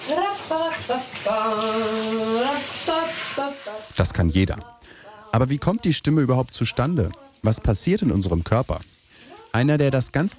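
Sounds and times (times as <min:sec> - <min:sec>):
shower water running: 0:00.0 - 0:04.1, 0:05.4 - 0:10.3
person singing in the shower: 0:00.0 - 0:08.2
speech: 0:00.1 - 0:02.7, 0:03.4 - 0:04.7, 0:05.3 - 0:08.9, 0:09.5 - 0:10.3.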